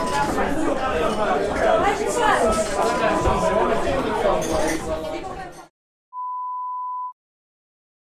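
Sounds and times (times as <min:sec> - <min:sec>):
restaurant ambience: 0:00.0 - 0:05.7.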